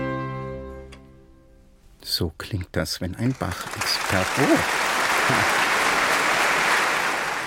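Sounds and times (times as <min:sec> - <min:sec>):
speech: 0:02.1 - 0:05.6
audience applause after a concert performance: 0:03.2 - 0:07.4.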